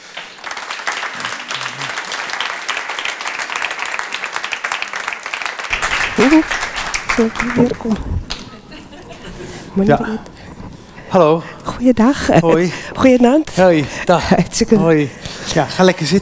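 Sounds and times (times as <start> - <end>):
audience applause: 0.0 - 9.6
cheerful voices and brief speech: 5.7 - 9.7
laughter: 5.7 - 10.2
speech: 6.2 - 8.3, 9.8 - 10.4, 11.1 - 16.2.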